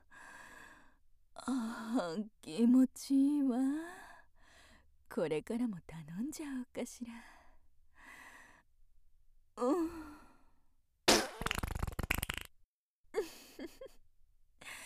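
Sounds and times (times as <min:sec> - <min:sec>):
speech: 0:01.5 - 0:04.0, 0:05.1 - 0:07.4, 0:09.6 - 0:10.0
fart: 0:11.1 - 0:12.5.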